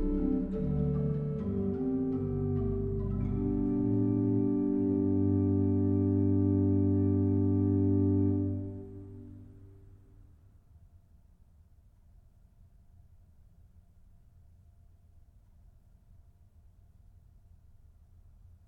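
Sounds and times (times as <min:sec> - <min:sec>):
organ chorale prelude: 0:00.0 - 0:09.9.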